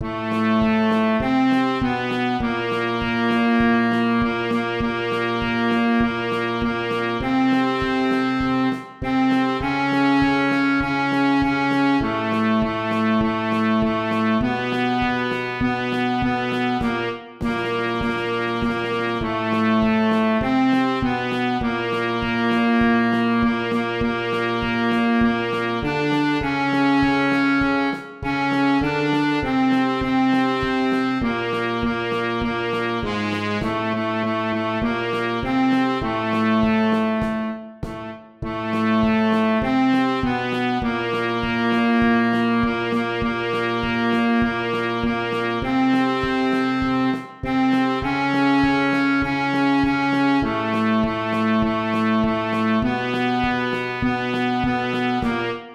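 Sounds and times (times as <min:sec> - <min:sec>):
saxophone: 0:00.0 - 0:55.7
two trumpets: 0:00.0 - 0:55.7.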